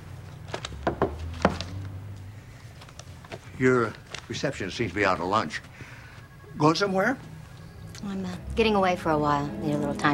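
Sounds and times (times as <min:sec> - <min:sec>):
knocking on an open office door: 0:00.8 - 0:01.6
speech: 0:03.6 - 0:05.7, 0:06.6 - 0:07.3, 0:08.0 - 0:10.1.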